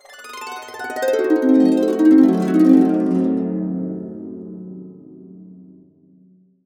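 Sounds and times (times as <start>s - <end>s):
harp cascade down on C diminished seventh: 0.4s - 4.7s.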